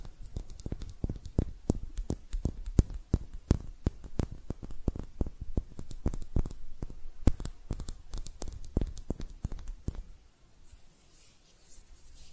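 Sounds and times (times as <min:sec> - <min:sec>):
hand taps and scratches: 0:00.0 - 0:10.1
faint rustling: 0:07.8 - 0:12.3.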